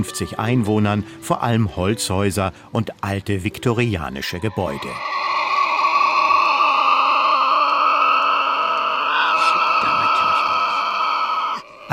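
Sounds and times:
speech: 0.0s - 5.3s
Tasmanian devil screeching: 4.1s - 11.9s.

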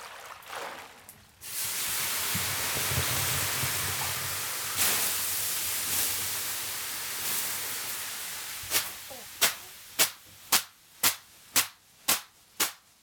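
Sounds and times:
water poured on hot sauna stones hissing: 1.4s - 11.8s
birch whisk slaps: 8.7s - 13.0s.

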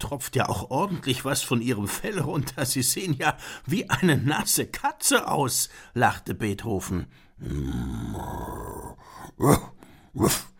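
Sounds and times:
speech: 0.0s - 8.8s, 9.4s - 10.5s
werewolf growl: 7.4s - 10.5s.

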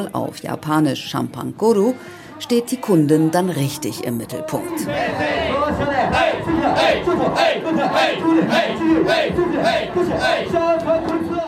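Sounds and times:
speech: 0.0s - 11.2s
group of hosts clapping: 5.5s - 11.4s.

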